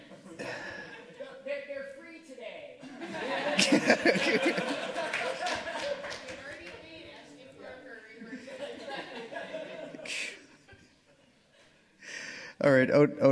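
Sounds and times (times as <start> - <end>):
laughter: 0.0 - 1.5, 2.8 - 6.6, 8.1 - 11.8
speech: 3.6 - 4.8, 12.9 - 13.3
round of applause: 5.0 - 7.0.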